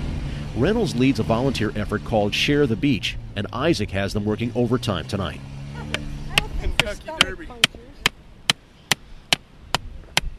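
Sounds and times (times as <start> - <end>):
speech: 0.6 - 5.6, 6.8 - 7.8
hammering wooden stakes around a turtle nest: 5.9 - 10.3.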